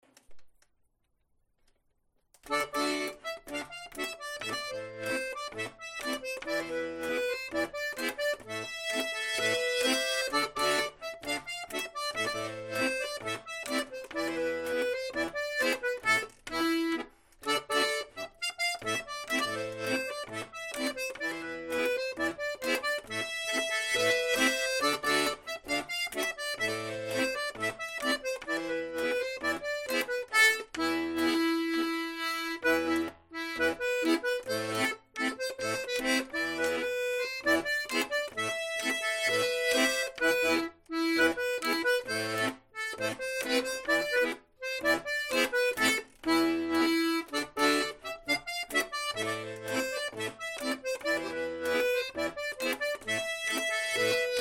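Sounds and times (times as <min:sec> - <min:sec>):
tango music: 0:02.6 - 0:54.3.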